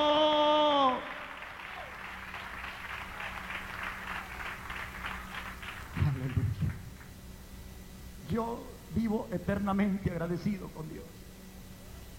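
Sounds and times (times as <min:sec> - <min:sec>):
audience applauding: 0:00.8 - 0:07.2
speech: 0:08.4 - 0:11.2.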